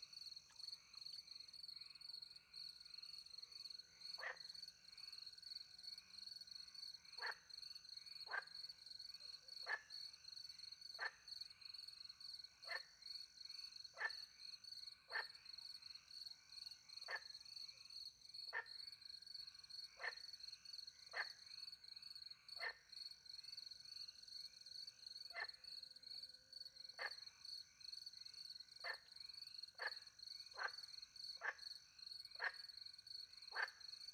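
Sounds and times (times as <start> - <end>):
crickets chorus: 0.0 - 34.1
frog croaking: 27.0 - 27.2, 29.8 - 31.7, 32.4 - 32.6, 33.5 - 33.8.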